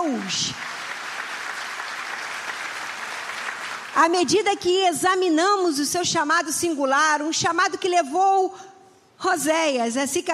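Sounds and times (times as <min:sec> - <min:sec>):
speech: 0:00.0 - 0:00.7, 0:04.0 - 0:10.3
audience applauding: 0:00.0 - 0:04.1.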